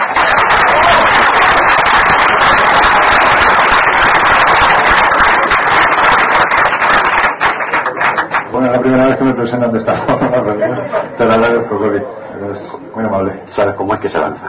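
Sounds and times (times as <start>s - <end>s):
applause: 0.0s - 8.8s
speech: 9.1s - 14.4s.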